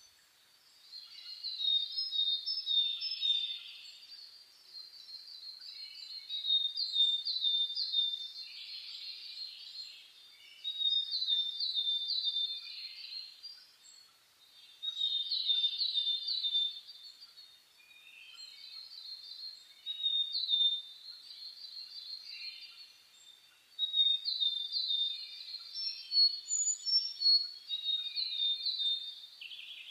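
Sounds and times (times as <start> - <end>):
birds in a dawn chorus: 0.0 - 29.9.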